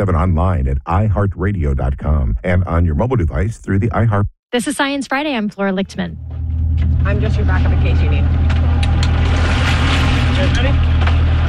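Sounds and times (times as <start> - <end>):
speech: 0.0 - 6.4, 7.0 - 8.5, 10.4 - 10.9
boat engine droning off the coast of Miami: 6.0 - 11.4.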